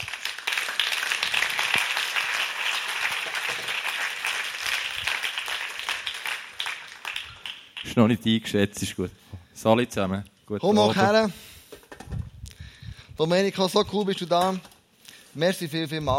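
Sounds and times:
audience applause: 0.0s - 7.9s
speech: 7.9s - 11.5s, 13.2s - 14.7s, 15.4s - 16.1s.

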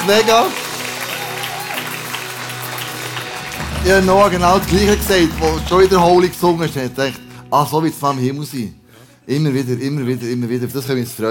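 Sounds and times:
speech: 0.0s - 0.6s, 3.8s - 11.2s
audience applause: 0.0s - 7.0s.

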